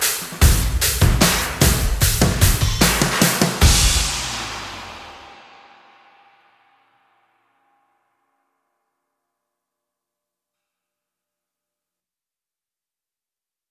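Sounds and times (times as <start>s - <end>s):
cymbals: 0.0s - 8.0s.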